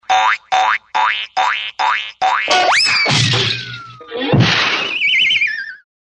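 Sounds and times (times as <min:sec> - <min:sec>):
bonk sounds: 0:00.1 - 0:04.6.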